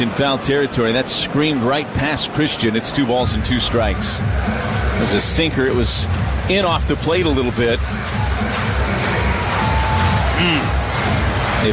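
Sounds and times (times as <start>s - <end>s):
speech: 0.0s - 8.6s
packed ballpark crowd roaring at a foul liner: 7.8s - 11.7s.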